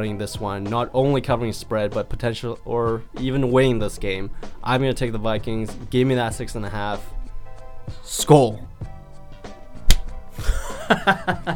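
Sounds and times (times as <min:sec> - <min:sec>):
speech: 0:00.0 - 0:07.2, 0:07.9 - 0:08.8, 0:10.4 - 0:11.5
single hand clap: 0:09.9 - 0:10.2
laughter: 0:10.4 - 0:11.5.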